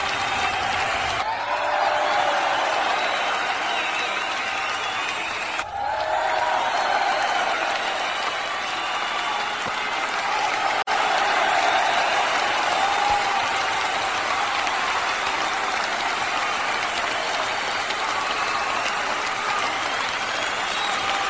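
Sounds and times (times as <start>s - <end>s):
applause: 0.0s - 21.2s.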